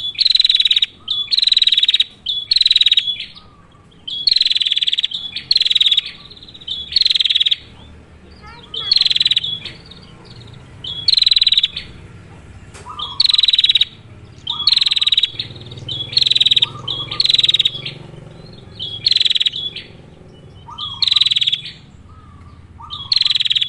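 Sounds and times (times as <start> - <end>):
female bar-winged prinia rolling buzzy pulsed trills: 0.0 - 23.6.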